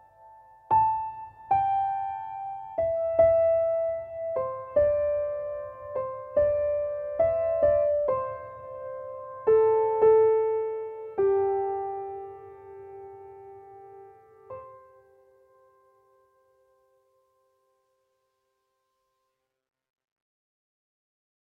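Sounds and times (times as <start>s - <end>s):
piano music: 0.0s - 16.8s.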